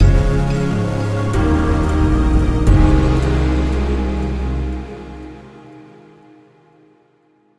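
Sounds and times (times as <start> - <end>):
shimmer: 0.0 - 6.0.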